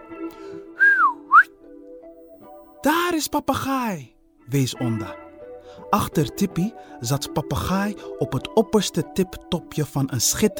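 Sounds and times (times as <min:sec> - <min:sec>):
whistling through cupped hands: 0:00.8 - 0:01.5
speech: 0:02.8 - 0:05.2, 0:05.8 - 0:10.5.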